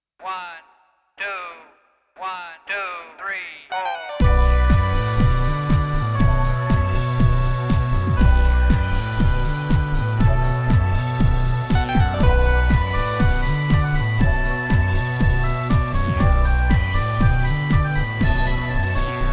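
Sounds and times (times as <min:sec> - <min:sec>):
techno beat: 0:04.2 - 0:19.3.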